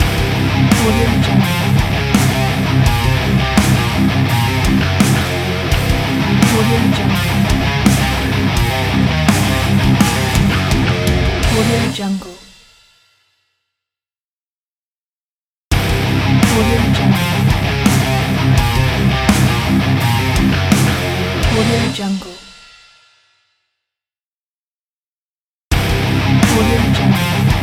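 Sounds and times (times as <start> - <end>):
heavy metal logo music: 0.0 - 12.0, 15.7 - 22.1, 25.8 - 27.6.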